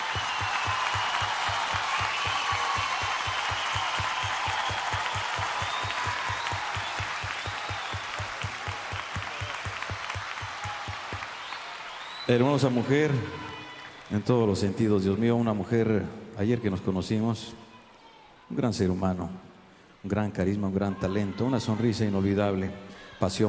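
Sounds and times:
audience applause: 0.0s - 14.9s
speech: 12.3s - 13.5s, 14.1s - 17.6s, 18.5s - 23.4s.

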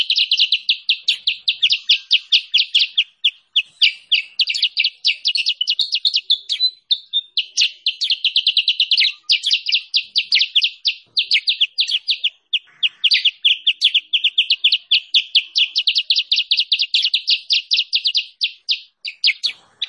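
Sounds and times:
bulbul continuous song: 0.0s - 19.8s.

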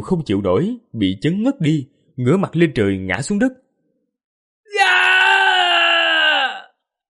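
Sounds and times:
speech: 0.0s - 3.6s
agonized roaring scream: 4.7s - 6.8s.

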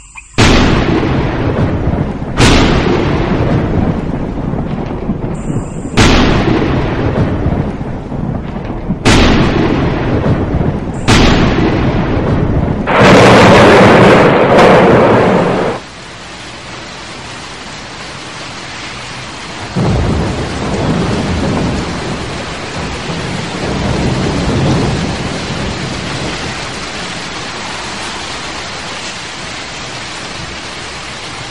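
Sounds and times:
loud thunderclap: 0.4s - 15.8s, 19.5s - 28.2s
rumbling thunder: 0.4s - 15.8s, 19.5s - 31.5s.

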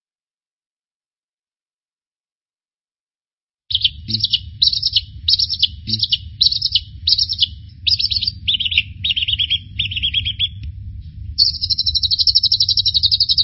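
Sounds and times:
bird singing: 3.7s - 10.6s, 11.4s - 13.4s.

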